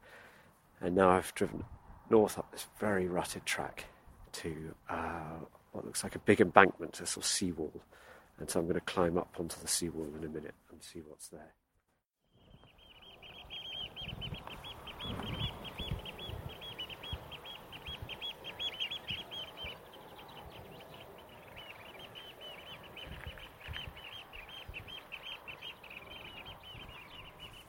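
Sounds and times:
speech: 0.8s - 11.6s
oystercatchers calling on the shore: 12.3s - 27.6s.

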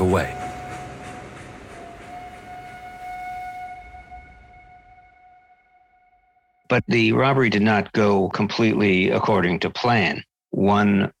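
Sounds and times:
train whistle echoing in expansive farmland: 0.0s - 6.3s
speech: 0.1s - 0.4s, 6.7s - 11.1s.

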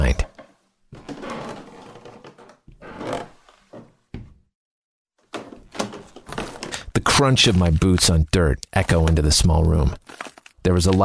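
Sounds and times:
old tattered white door opening: 0.1s - 4.4s, 5.3s - 6.9s
speech: 7.2s - 11.0s.

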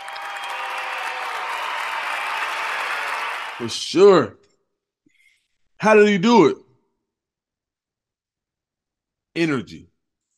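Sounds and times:
round of applause for football running back Cadillac Williams: 0.0s - 3.8s
speech: 3.6s - 4.4s, 5.8s - 6.6s, 9.4s - 9.9s.

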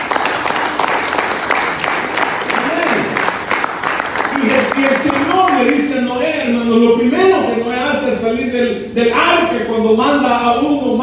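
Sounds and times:
audience applause: 0.0s - 5.8s
speech: 6.7s - 11.0s.

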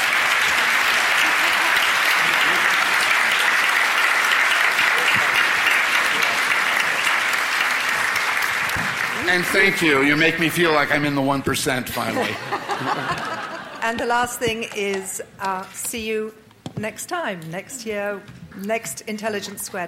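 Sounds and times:
applause from a large crowd: 0.0s - 13.8s
laughter: 0.6s - 3.5s, 11.9s - 14.2s
speech: 9.3s - 19.8s.

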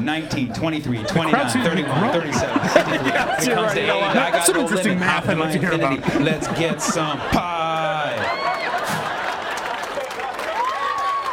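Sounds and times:
speech: 0.0s - 8.4s
laughter: 0.1s - 11.3s
stereo applause: 7.6s - 11.3s.

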